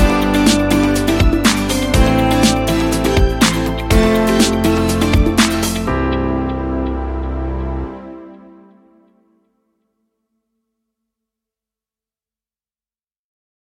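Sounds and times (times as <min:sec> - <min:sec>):
upbeat motivational music: 0:00.0 - 0:09.1.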